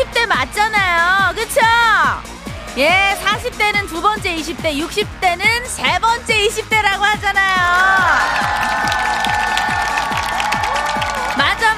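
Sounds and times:
rhythmic thumping beat: 0.0s - 11.7s
speech: 2.8s - 9.3s
crowd applause: 7.8s - 11.7s.

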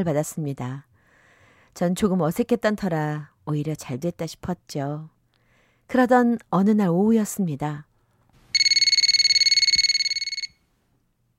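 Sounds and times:
speech: 0.0s - 0.9s, 1.7s - 5.1s, 5.9s - 7.9s
telephone ringing: 8.5s - 10.7s.

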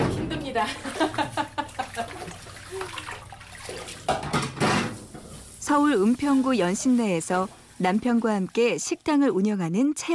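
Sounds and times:
laughter: 0.3s - 2.3s
running tap water: 0.5s - 9.7s
speech: 0.6s - 1.5s, 5.7s - 10.1s
dishes clattering while washed: 4.1s - 5.4s.

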